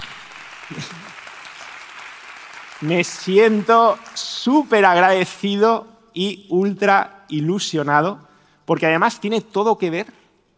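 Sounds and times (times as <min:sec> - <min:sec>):
audience applause: 0:00.0 - 0:05.2
speech: 0:00.7 - 0:01.2, 0:02.8 - 0:10.2.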